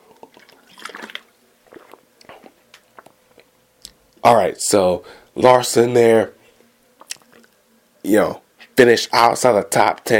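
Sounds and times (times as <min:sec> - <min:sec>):
person taking a swig of water: 0:00.0 - 0:04.0, 0:07.0 - 0:07.6
gulping and swallowing: 0:00.1 - 0:04.0, 0:07.0 - 0:07.6
speech: 0:04.2 - 0:06.4, 0:08.1 - 0:10.1.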